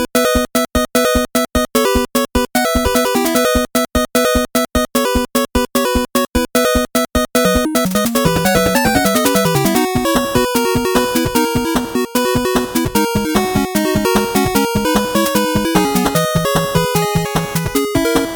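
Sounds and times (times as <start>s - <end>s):
8-bit background music: 0.2s - 5.3s, 5.9s - 18.2s.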